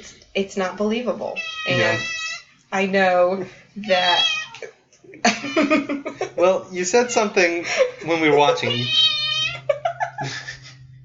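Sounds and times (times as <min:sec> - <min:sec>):
speech: 0:00.0 - 0:09.2
male cat meowing: 0:01.3 - 0:02.5, 0:03.9 - 0:04.6, 0:08.4 - 0:09.7
laughter: 0:01.7 - 0:02.0, 0:05.2 - 0:10.9.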